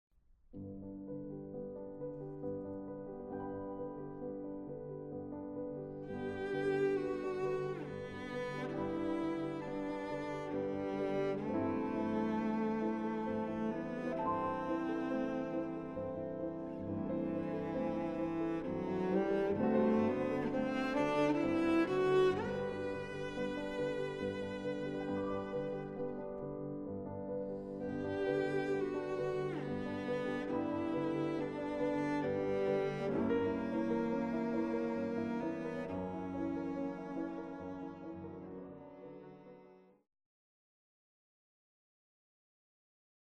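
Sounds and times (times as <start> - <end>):
cello: 0.8 - 40.0.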